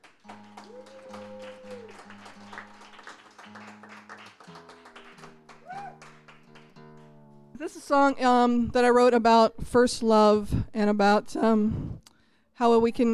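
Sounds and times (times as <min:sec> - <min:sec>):
crowd applause: 0:00.0 - 0:07.2
speech: 0:07.6 - 0:12.0, 0:12.6 - 0:13.1.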